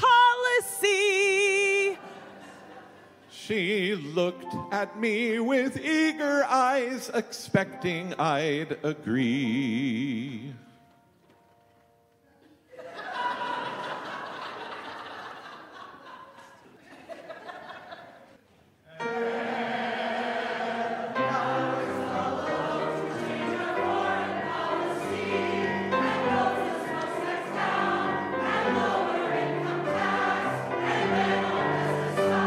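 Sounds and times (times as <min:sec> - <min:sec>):
choir with soloists and piano: 0:00.0 - 0:10.8, 0:18.9 - 0:32.4
laughter: 0:01.8 - 0:03.3, 0:12.4 - 0:18.4.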